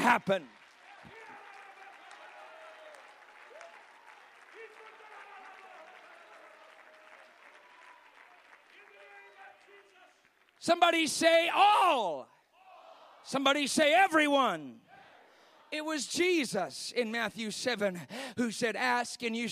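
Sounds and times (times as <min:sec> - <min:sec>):
audience clapping hands: 0:00.0 - 0:11.5
speech: 0:00.1 - 0:00.6, 0:10.6 - 0:12.3, 0:13.2 - 0:14.8, 0:15.7 - 0:19.4.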